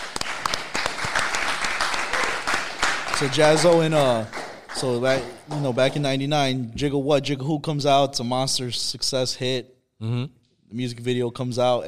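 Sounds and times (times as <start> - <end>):
applause: 0.0 - 6.3
speech: 3.2 - 11.8.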